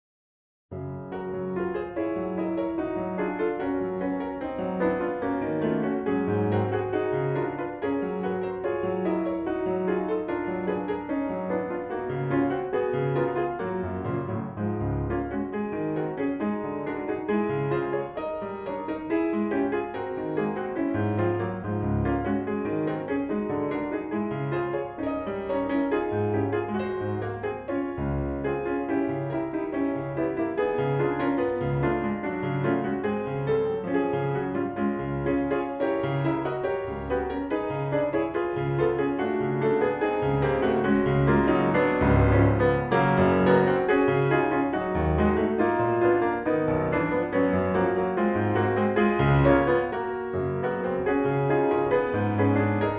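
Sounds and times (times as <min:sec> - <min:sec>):
prelude in D major, andante serioso: 0:00.8 - 0:52.9.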